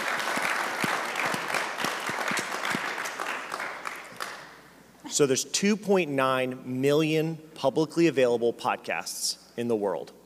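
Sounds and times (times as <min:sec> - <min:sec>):
audience applause: 0:00.0 - 0:04.5
speech: 0:05.2 - 0:10.2.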